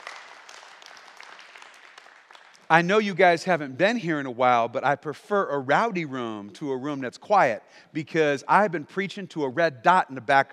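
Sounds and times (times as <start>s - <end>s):
church congregation clapping hands during a sermon: 0.0s - 3.4s
speech: 2.7s - 10.5s.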